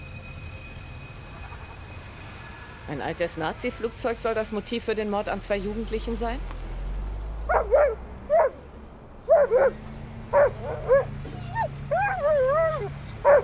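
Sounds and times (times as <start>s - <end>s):
speech: 2.9s - 6.6s, 9.6s - 9.8s
dog giving sharp alert barks: 7.5s - 8.6s, 9.2s - 11.2s, 11.9s - 13.4s
dog yelping and whining: 9.2s - 13.4s.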